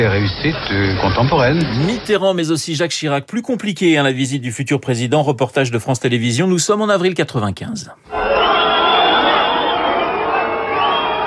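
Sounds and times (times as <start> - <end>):
speech: 0.0 - 8.3
high whistles from concert crowd: 8.1 - 11.2
large concert crowd roaring and cheering: 8.1 - 11.2.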